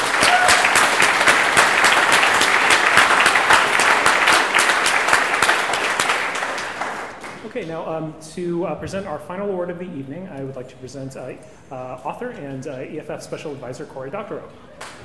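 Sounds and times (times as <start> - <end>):
round of applause: 0.0 - 7.5, 14.8 - 15.0
speech: 7.6 - 14.7.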